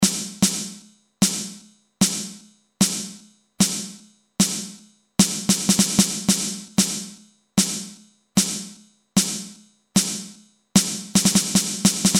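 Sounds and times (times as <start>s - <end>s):
ringing snare drum: 0.0s - 12.1s.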